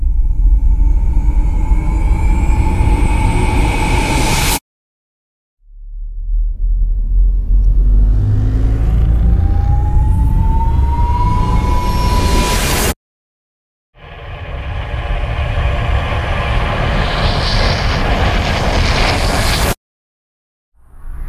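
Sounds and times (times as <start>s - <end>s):
reversed risers: 0.1s - 4.6s, 6.2s - 12.9s, 14.1s - 19.8s.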